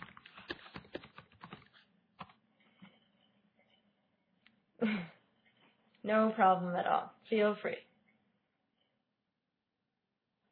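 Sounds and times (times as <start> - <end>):
keyboard typing an email address: 0.0 - 3.0
speech: 4.8 - 5.1, 6.0 - 7.9.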